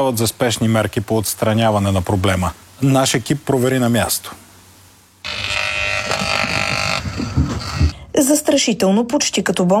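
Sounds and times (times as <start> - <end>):
speech: 0.0 - 4.4, 8.2 - 9.7
faulty electric pole buzzing: 5.2 - 8.0.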